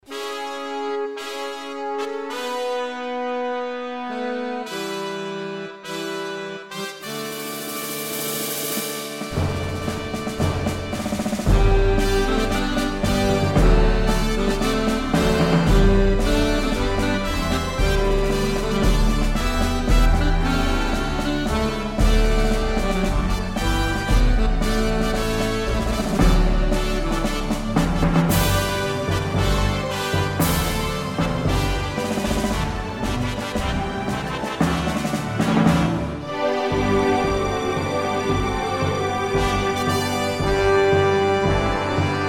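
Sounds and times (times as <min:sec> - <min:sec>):
Christmas carol beat: 0:00.1 - 0:42.2.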